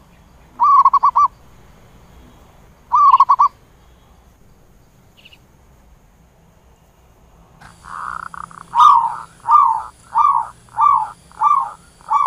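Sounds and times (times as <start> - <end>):
zebra dove cooing: 0.6 - 1.3, 2.9 - 3.5, 7.6 - 12.2.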